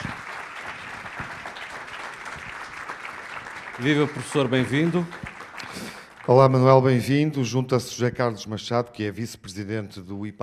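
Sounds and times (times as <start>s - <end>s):
audience applause: 0.0s - 7.2s
speech: 3.8s - 5.3s, 6.3s - 10.4s.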